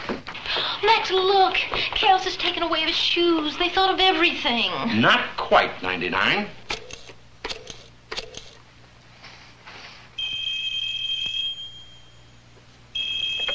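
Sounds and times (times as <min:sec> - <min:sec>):
speech: 0:00.8 - 0:06.6
telephone ringing: 0:10.2 - 0:12.3, 0:13.0 - 0:13.5.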